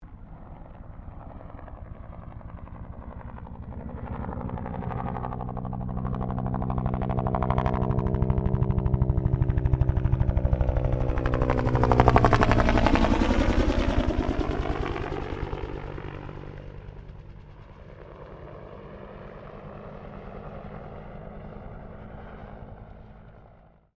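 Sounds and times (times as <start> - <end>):
1967 Bell UH1 Iroquois helicopter passing: 0.0 - 23.9.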